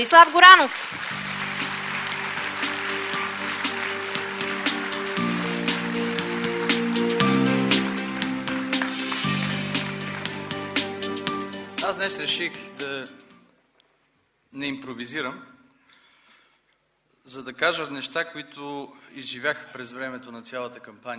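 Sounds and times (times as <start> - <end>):
speech: 0.0 - 1.4, 11.9 - 13.2, 14.5 - 15.5, 17.3 - 21.1
loud steady crowd applause: 0.0 - 12.8
sustained musical backing with shifting chords: 1.0 - 13.4.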